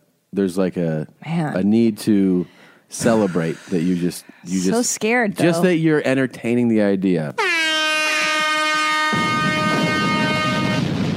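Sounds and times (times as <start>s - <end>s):
speech: 0.4s - 7.7s
celebration horns: 7.4s - 10.9s
explosions: 9.1s - 11.1s.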